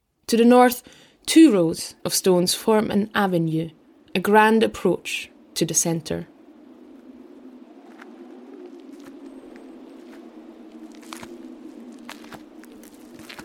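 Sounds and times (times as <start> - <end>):
speech: 0.3 - 6.3
steady low drone: 3.0 - 13.4
footsteps on paths around ancient standing stones: 7.9 - 13.4.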